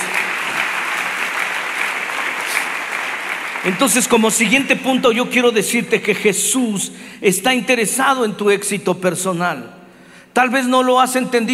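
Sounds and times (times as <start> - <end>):
audience applause: 0.0 - 4.5
speech: 3.6 - 9.8, 10.4 - 11.5.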